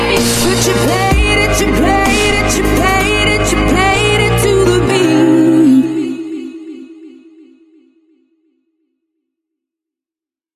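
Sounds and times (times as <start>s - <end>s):
dubstep remix: 0.0s - 6.1s.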